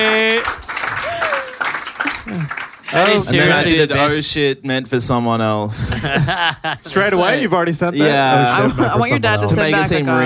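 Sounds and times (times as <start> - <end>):
audience applause: 0.0 - 3.8
speech: 2.4 - 10.2
laughter: 5.7 - 7.3, 8.2 - 9.5.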